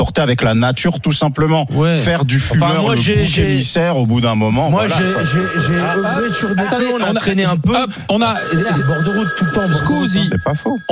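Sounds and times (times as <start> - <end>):
speech: 0.0 - 10.9
telephone ringing for incoming call: 4.8 - 7.5, 8.2 - 10.9.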